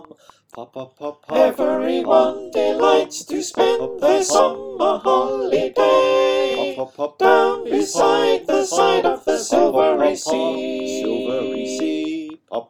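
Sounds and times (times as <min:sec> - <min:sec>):
soprano alto tenor bass choir singing: 0:01.3 - 0:12.4.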